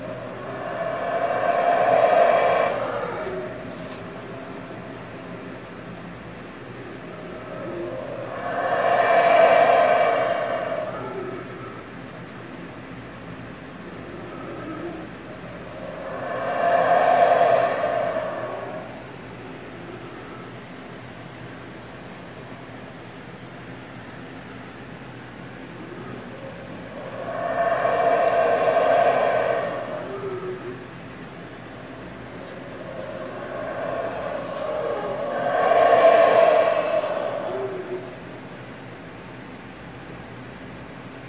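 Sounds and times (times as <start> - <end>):
howler monkeys roaring: 0.0 - 5.0, 6.8 - 12.0, 13.9 - 20.6, 25.7 - 39.0.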